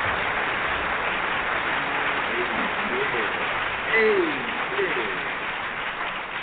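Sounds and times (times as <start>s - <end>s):
crowd applause: 0.2s - 6.4s
faint voices: 1.6s - 5.5s
cheers: 3.9s - 5.3s.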